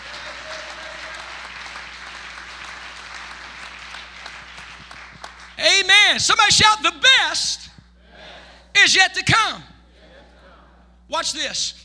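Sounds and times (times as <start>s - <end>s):
crowd applauding: 0.0s - 5.6s
faint hum: 0.0s - 11.8s
speech: 5.6s - 7.6s, 8.8s - 9.7s, 11.1s - 11.8s.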